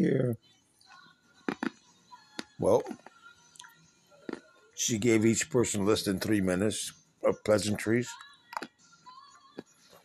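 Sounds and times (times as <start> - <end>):
speech: 0.0 - 0.6, 2.6 - 3.1, 4.8 - 8.7
person munching an anti-phosphorus pill: 1.4 - 4.5, 8.2 - 8.8, 9.5 - 10.0.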